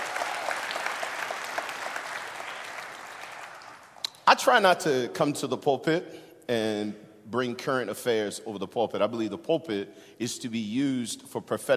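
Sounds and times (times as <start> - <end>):
audience hand clapping: 0.0 - 4.1
speech: 4.3 - 11.7.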